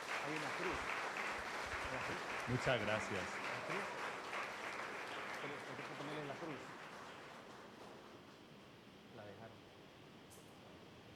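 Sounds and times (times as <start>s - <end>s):
audience applause in church: 0.0s - 8.0s
speech: 0.2s - 1.0s, 1.9s - 4.0s, 5.4s - 6.8s.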